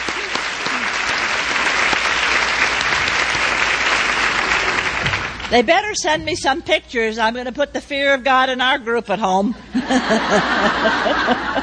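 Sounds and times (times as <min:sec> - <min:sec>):
crowd clapping: 0:00.0 - 0:05.7
speech: 0:05.5 - 0:11.6
laughter: 0:09.5 - 0:11.6.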